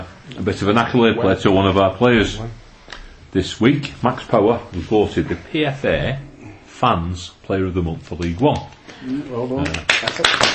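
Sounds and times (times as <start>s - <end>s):
speech: 0.4s - 2.6s, 3.3s - 6.2s, 6.8s - 10.5s
spontaneous applause: 9.6s - 10.5s.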